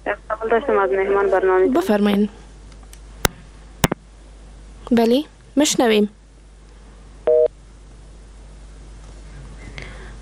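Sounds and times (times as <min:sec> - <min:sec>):
speech: 0:00.5 - 0:02.4, 0:04.9 - 0:06.2
telephone busy signal after a caller's line is cut off during a phone-in call: 0:07.3 - 0:07.5.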